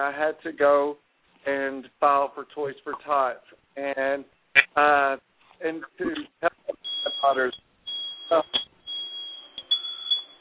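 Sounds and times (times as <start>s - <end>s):
speech: 0.0s - 7.6s, 8.3s - 8.7s
mobile phone beeping: 6.8s - 10.4s.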